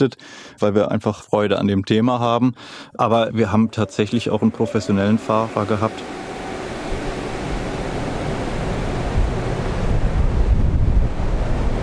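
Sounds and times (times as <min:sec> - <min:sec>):
speech: 0:00.0 - 0:06.2
wind tunnel fan blowing air: 0:04.3 - 0:11.8.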